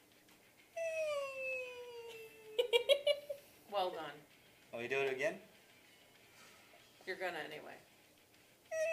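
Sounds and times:
vocal imitation of expiratory wheezing: 0.8 - 2.5
speech: 3.8 - 5.5, 7.1 - 7.9.

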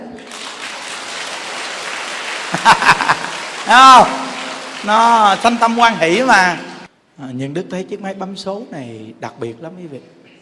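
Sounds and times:
audience clapping hands: 0.0 - 6.9
laughter: 2.4 - 4.2
speech: 2.5 - 10.2.

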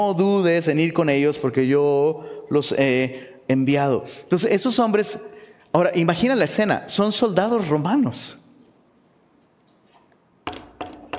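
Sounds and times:
speech: 0.0 - 8.4
knocking on a door: 10.4 - 11.1.

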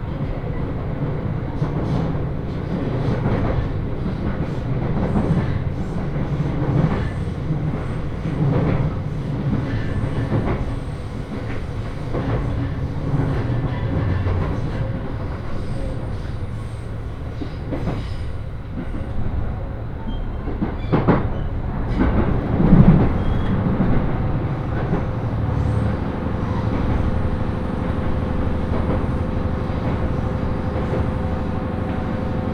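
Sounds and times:
Senseki-Tohoku Line rapid train wheels and car body rumbling: 0.0 - 32.5
rhythmic rail clicks: 0.1 - 32.5
sharp squeal or clunk: 20.1 - 22.0, 23.1 - 23.6.

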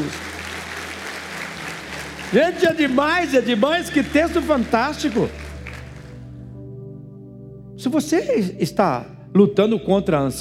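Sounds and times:
applause from a large audience: 0.0 - 6.3
speech: 2.3 - 5.4, 7.8 - 10.3.

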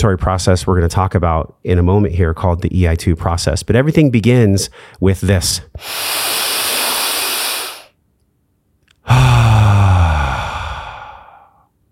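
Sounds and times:
speech: 0.0 - 6.3
sighing exhale with low voiced hum: 5.8 - 7.9, 9.0 - 11.6
deep inhale: 5.8 - 8.0, 9.0 - 11.7.

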